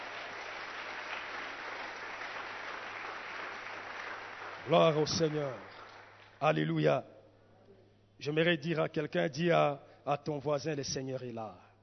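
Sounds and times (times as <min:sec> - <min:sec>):
church congregation applauding during a worship service: 0:00.0 - 0:06.6
speech: 0:04.7 - 0:05.8, 0:06.4 - 0:07.1, 0:08.2 - 0:11.6.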